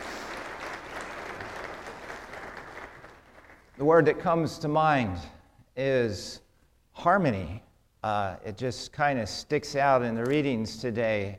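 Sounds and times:
congregation applause at a church service: 0.0 - 4.5
speech: 3.8 - 6.4, 7.0 - 11.3.

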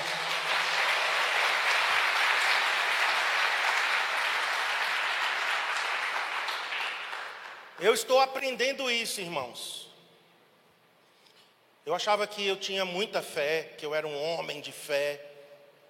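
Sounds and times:
audience applause: 0.0 - 7.7
speech: 7.8 - 9.8, 11.9 - 15.3.

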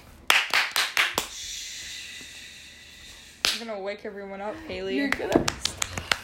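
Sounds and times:
sharp hand claps: 0.3 - 1.4, 3.4 - 3.7, 5.1 - 6.2
speech: 3.6 - 5.7.

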